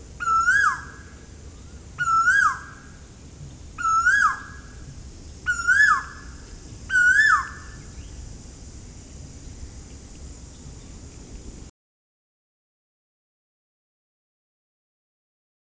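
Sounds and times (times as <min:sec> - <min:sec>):
Asian koel Eudynamys scolopaceus rising whistled notes at Ezhimala, Kannur, Kerala: 0:00.2 - 0:01.0, 0:02.0 - 0:02.8, 0:03.8 - 0:04.6, 0:05.5 - 0:06.2, 0:06.9 - 0:08.2.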